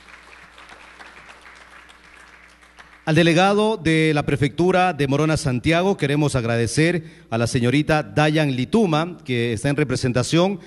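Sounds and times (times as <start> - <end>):
audience applause welcoming an official guest at a municipal gathering: 0.0 - 3.1
speech: 3.1 - 10.6.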